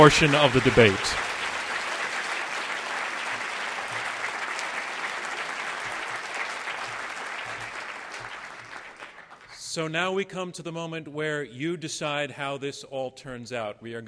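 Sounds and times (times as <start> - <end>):
speech: 0.0 - 1.3, 9.8 - 14.0
audience applause: 0.0 - 9.6.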